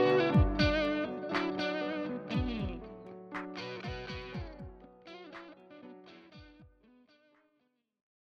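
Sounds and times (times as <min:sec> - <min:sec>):
solo piano excerpt: 0:00.0 - 0:06.4.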